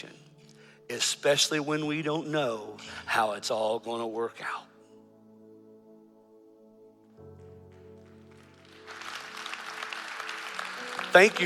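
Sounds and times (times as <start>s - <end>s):
speech: 0.9s - 4.7s, 11.1s - 11.4s
audience clapping: 7.3s - 11.4s.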